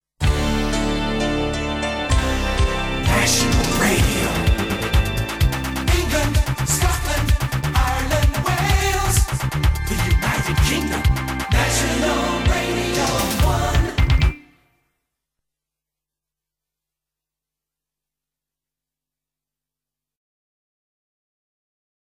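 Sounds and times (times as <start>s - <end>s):
jingle: 0.4s - 14.5s.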